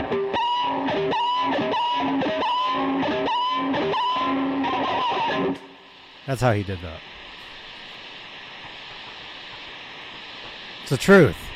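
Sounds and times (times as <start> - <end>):
distorted electric guitar high E string pressed against pickup squealing: 0.0 - 5.8
speech: 6.3 - 7.1, 10.9 - 11.5.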